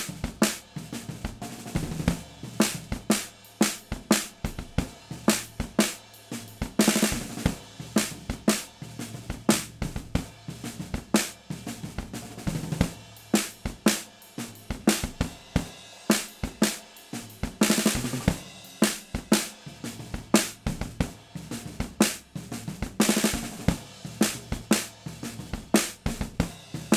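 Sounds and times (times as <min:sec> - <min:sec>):
snare drum hits: 0:00.0 - 0:00.7, 0:01.4 - 0:08.8, 0:09.5 - 0:10.0, 0:12.3 - 0:14.1, 0:14.7 - 0:21.0, 0:22.0 - 0:22.3, 0:22.9 - 0:25.0, 0:25.7 - 0:26.9.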